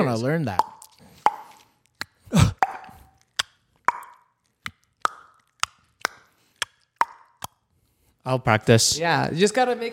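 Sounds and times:
speech: 0:00.0 - 0:00.7, 0:08.2 - 0:09.9
tongue pops from suction on the palate: 0:00.6 - 0:07.7.

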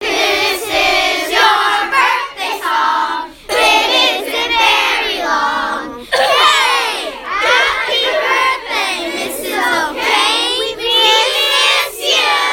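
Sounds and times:
birthday song: 0:00.0 - 0:12.5.

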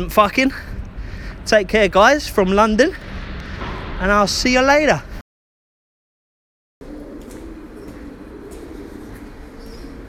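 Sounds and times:
speech: 0:00.0 - 0:00.8, 0:01.4 - 0:03.2, 0:04.0 - 0:05.1
outdoor noise: 0:00.0 - 0:05.2, 0:06.8 - 0:10.0
pigeons cooing: 0:06.8 - 0:10.0.

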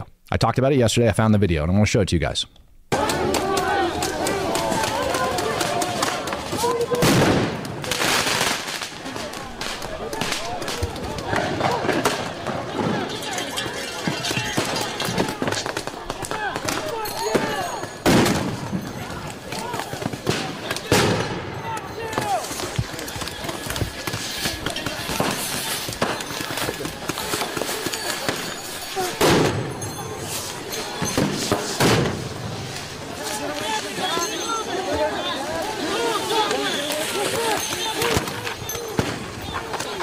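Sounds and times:
speech: 0:00.3 - 0:02.6
people shouting: 0:02.9 - 0:07.2, 0:09.0 - 0:29.4, 0:32.6 - 0:40.0
explosive devices going off during a night attack on the Portland ICE facility: 0:05.6 - 0:13.2, 0:14.0 - 0:19.2, 0:19.8 - 0:33.1.

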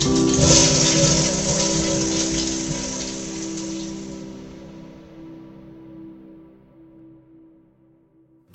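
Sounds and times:
toilet flushing: 0:00.0 - 0:05.1.

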